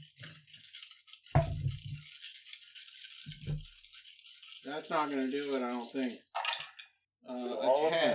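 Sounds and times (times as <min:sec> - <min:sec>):
dice rolling: 0:00.0 - 0:04.6
speech: 0:04.7 - 0:06.3, 0:07.3 - 0:08.1.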